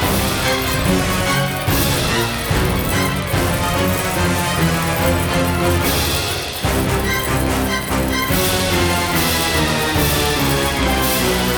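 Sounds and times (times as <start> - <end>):
big win music loop: 0.0 - 11.5.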